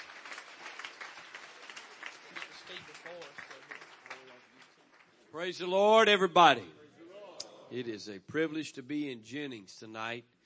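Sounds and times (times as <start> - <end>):
church audience hand clapping: 0.0 - 5.7
speech: 5.3 - 6.8, 7.7 - 10.4.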